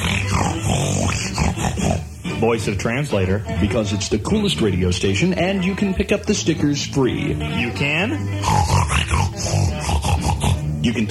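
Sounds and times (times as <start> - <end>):
pig grunting: 0.0 - 2.2, 8.4 - 10.9
speech: 2.4 - 8.8, 10.9 - 11.1.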